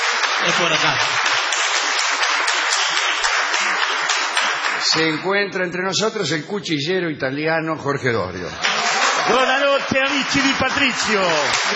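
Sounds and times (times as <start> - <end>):
audience applause: 0.0 - 5.2, 8.6 - 11.7
speech: 0.4 - 1.3, 4.8 - 11.7.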